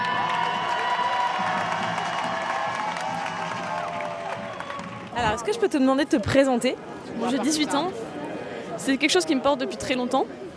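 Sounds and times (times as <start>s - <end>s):
large outdoor march crowd clapping: 0.0s - 5.8s
speech: 5.2s - 8.2s, 8.8s - 10.5s.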